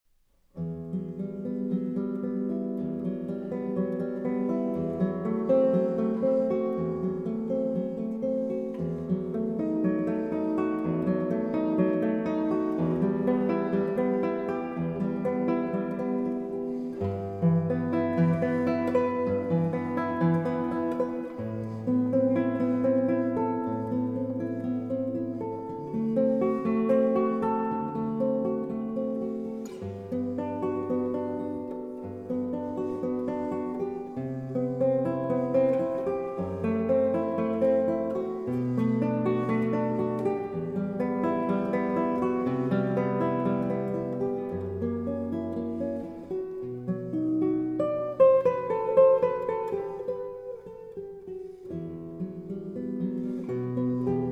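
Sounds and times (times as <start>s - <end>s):
guitar prelude: 0.5s - 54.3s.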